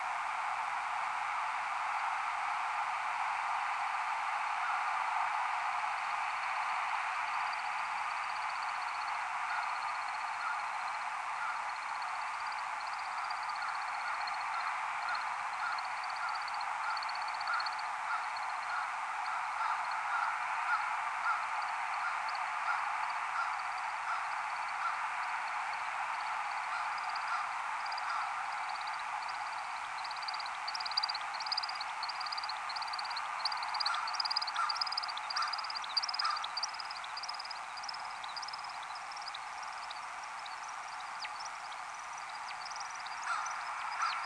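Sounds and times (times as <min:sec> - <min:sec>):
steady loud background hiss: 0:00.0 - 0:44.2
American woodcock display twittering: 0:26.8 - 0:44.2.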